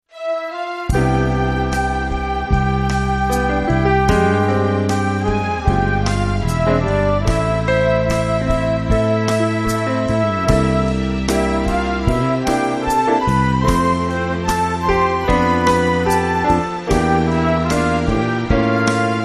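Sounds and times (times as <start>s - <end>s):
bossa jazz orchestra: 0.9s - 19.2s.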